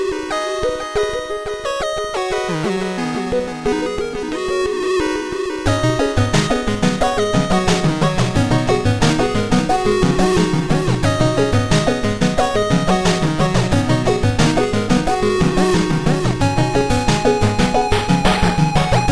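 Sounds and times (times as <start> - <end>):
8-bit music: 0.0 - 19.0.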